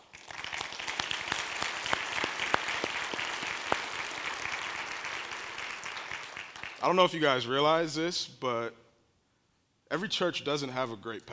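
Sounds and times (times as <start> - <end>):
audience applause: 0.0 - 6.8
speech: 6.8 - 8.8, 9.9 - 11.3.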